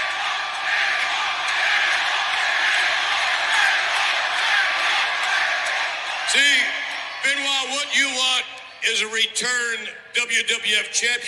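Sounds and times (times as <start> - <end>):
wrestling crowd chanting: 0.0 - 7.3
speech: 7.9 - 11.2.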